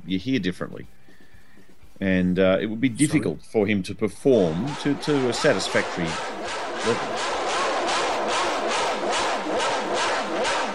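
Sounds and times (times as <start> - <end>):
speech: 0.1 - 1.0, 2.0 - 7.4
Ferrari V12 racing engine roaring: 4.4 - 10.7.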